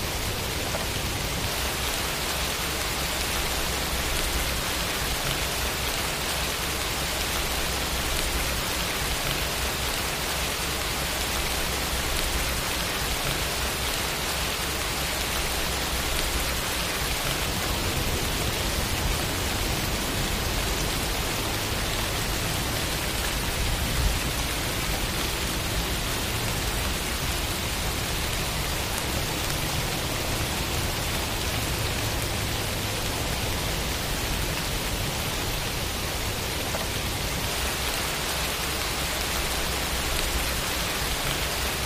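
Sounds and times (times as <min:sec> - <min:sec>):
rain: 0:00.0 - 0:41.8.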